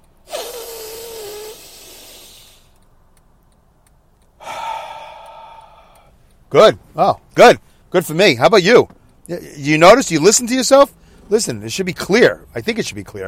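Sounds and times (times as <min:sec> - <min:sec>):
deep breath in and out: 0:00.3 - 0:02.8, 0:04.4 - 0:06.2
speech: 0:06.5 - 0:13.2.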